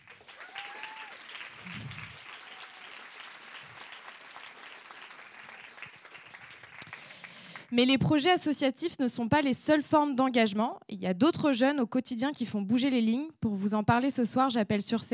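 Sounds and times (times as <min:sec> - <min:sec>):
cheers: 0:00.0 - 0:07.4
audience applause: 0:00.0 - 0:07.7
speech: 0:07.7 - 0:15.1.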